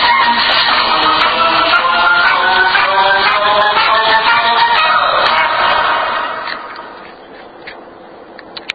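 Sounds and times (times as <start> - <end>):
theme song: 0.0 - 7.0.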